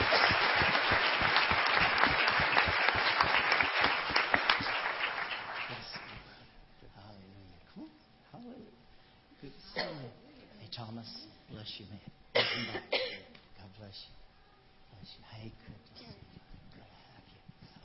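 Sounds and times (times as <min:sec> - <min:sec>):
audience applause: 0:00.0 - 0:06.3
speech: 0:11.0 - 0:13.0, 0:13.8 - 0:14.3, 0:15.0 - 0:16.3.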